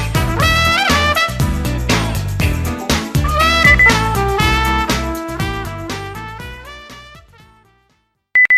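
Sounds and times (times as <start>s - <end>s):
jazz music: 0.0s - 7.9s
beep: 3.6s - 4.0s, 8.4s - 8.5s.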